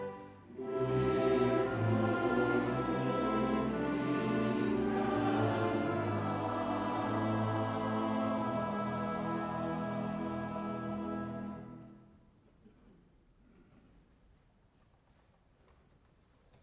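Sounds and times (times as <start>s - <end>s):
choir singing: 0.0s - 12.0s.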